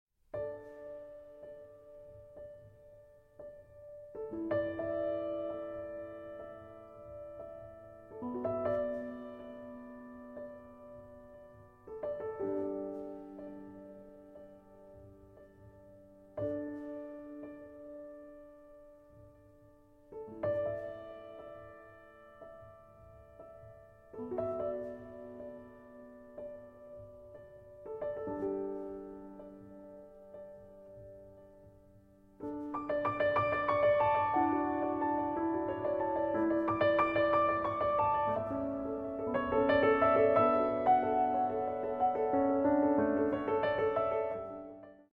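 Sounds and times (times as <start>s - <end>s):
solo piano: 0.2s - 45.1s.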